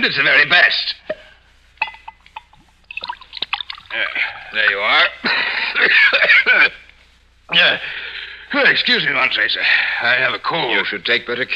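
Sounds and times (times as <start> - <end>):
speech: 0.0 - 1.0, 3.9 - 6.8, 7.5 - 11.5
sherry being poured into a glass: 1.9 - 4.8
laughter: 3.9 - 6.9.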